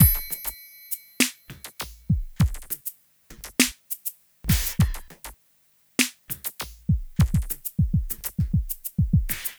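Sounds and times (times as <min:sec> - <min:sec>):
smooth R&B drums: 0:00.0 - 0:00.6, 0:01.2 - 0:03.9, 0:04.5 - 0:05.4, 0:06.0 - 0:09.5.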